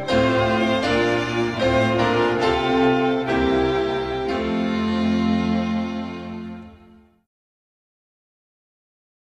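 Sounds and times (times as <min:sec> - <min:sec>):
instrumental music: 0:00.0 - 0:07.2.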